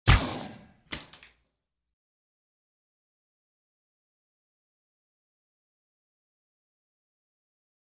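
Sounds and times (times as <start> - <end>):
blood pouring: 0.9 - 1.4.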